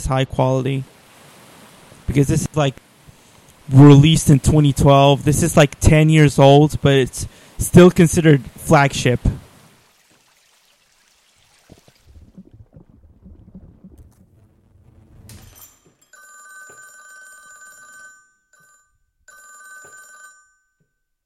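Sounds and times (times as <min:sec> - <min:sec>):
speech: 0:00.0 - 0:00.9, 0:02.1 - 0:02.9, 0:03.7 - 0:09.4
rushing rumbling noise: 0:12.1 - 0:15.5
telephone bell ringing from a sound library: 0:16.0 - 0:21.2.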